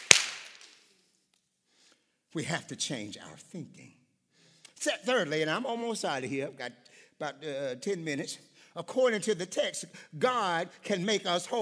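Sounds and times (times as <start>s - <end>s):
audience clapping: 0.0s - 0.8s
speech: 2.3s - 4.0s, 4.8s - 11.6s.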